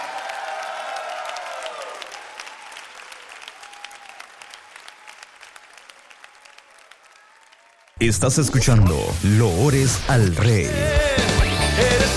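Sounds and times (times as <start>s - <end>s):
loud audience applause: 0.0s - 8.6s
speech: 8.0s - 11.1s.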